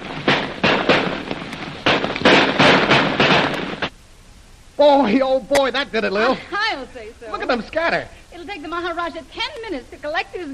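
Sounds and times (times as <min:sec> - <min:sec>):
rapid gunshots in a staged shootout in a radio drama: 0:00.0 - 0:03.9
speech: 0:04.8 - 0:10.5.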